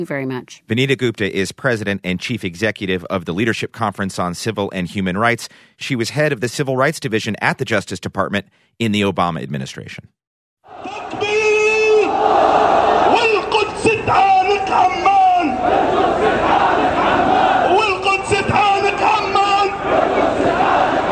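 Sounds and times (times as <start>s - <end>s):
speech: 0.0s - 11.3s
protest crowd chanting: 10.7s - 21.1s.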